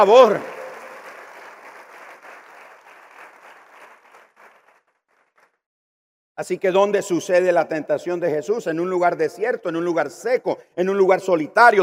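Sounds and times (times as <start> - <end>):
speech: 0.0 - 0.5, 6.4 - 11.8
audience applause: 0.0 - 5.5.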